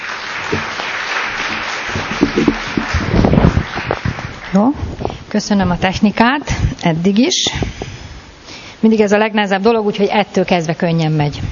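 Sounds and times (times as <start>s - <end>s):
audience applause: 0.0s - 4.6s
speech: 4.5s - 7.7s, 8.8s - 11.4s.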